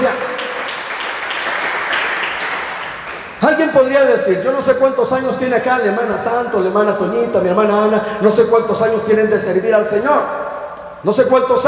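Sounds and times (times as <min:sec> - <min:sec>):
church audience clapping: 0:00.0 - 0:03.6
speech: 0:03.4 - 0:11.6.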